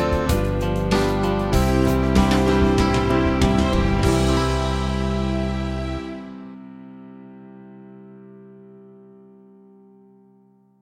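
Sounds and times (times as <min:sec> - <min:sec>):
band playing: 0:00.0 - 0:06.5.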